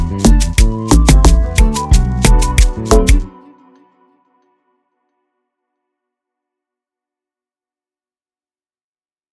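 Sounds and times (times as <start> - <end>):
instrumental beat: 0.0 - 3.4.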